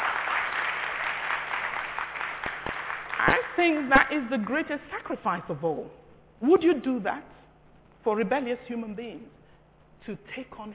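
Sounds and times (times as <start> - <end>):
audience clapping: 0.0 - 4.1
speech: 3.6 - 7.4, 8.0 - 9.4, 10.0 - 10.7.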